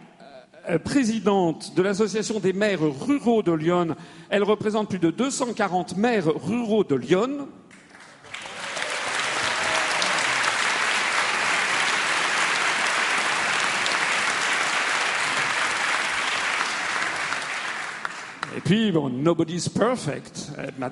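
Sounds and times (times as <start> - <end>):
speech: 0.7 - 7.6, 18.7 - 20.9
audience applause: 7.8 - 18.7.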